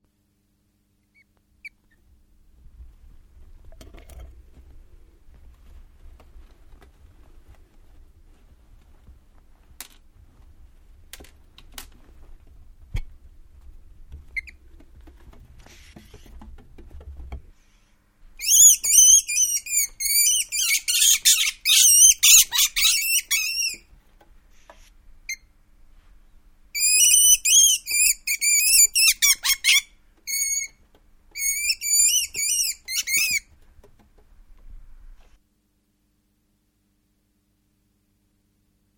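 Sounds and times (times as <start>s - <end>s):
weasel in enclosure: 14.3s - 14.7s, 18.4s - 23.9s, 26.8s - 33.6s.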